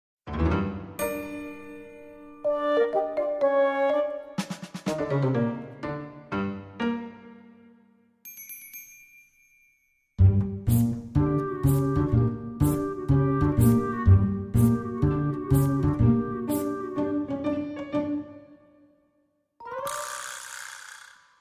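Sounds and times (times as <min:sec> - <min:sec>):
main page background music: 0:00.3 - 0:08.1, 0:10.2 - 0:20.2.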